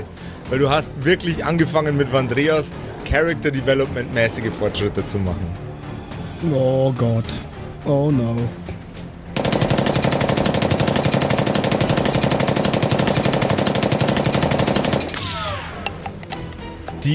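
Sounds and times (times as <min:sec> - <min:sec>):
speech: 0:00.5 - 0:05.7, 0:06.4 - 0:08.6
machine gun fire: 0:09.4 - 0:15.2
high metallic pings: 0:15.6 - 0:17.1.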